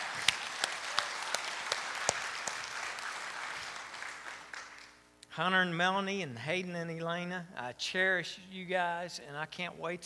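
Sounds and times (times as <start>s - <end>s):
audience clapping: 0.0s - 5.0s
speech: 5.4s - 10.0s.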